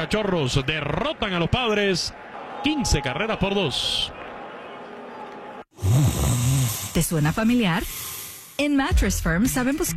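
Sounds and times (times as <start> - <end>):
speech: 0.0 - 4.2, 7.0 - 8.0, 8.6 - 9.9
person snoring: 5.8 - 7.0, 7.8 - 8.6.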